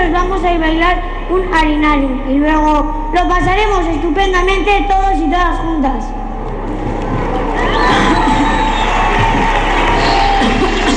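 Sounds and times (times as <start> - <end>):
speech: 0.4 - 7.0
children applauding and cheering: 6.5 - 10.9.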